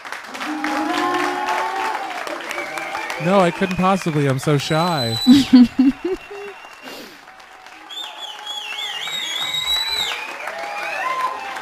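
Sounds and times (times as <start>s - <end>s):
audience applause: 0.0s - 11.6s
cheers and whoops: 0.2s - 3.8s, 6.1s - 11.6s
speech: 3.2s - 6.4s
laughter: 3.2s - 7.1s.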